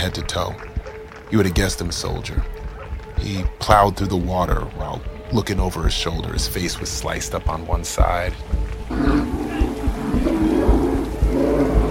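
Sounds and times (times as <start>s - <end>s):
speech: 0.0s - 2.6s, 3.2s - 9.3s
bear roaring: 8.9s - 11.8s.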